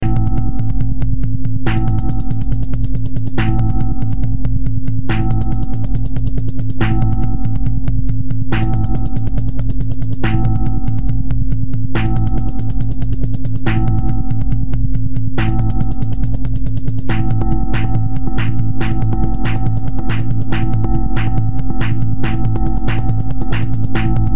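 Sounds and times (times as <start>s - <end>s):
tension music: 0.0s - 24.3s.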